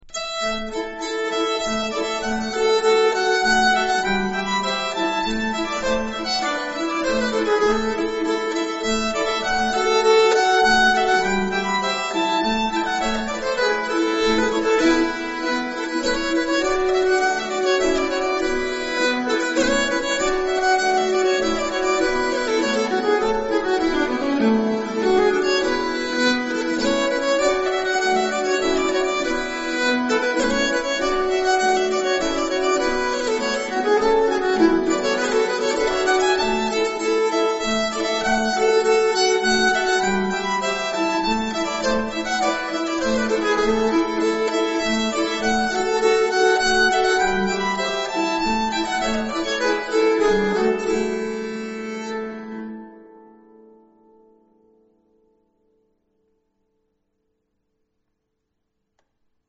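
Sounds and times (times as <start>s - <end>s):
nyckelharpa playing a polska: 0.0s - 53.5s.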